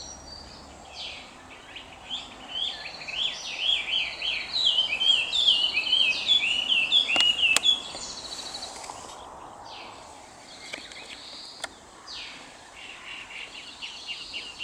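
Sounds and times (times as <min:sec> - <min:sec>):
Chinese hwamei singing warbling whistled phrases: 0:00.0 - 0:08.7.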